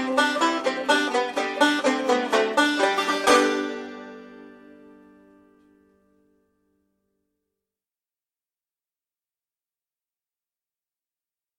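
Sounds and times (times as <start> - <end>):
hollow banjo: 0.0 - 5.8.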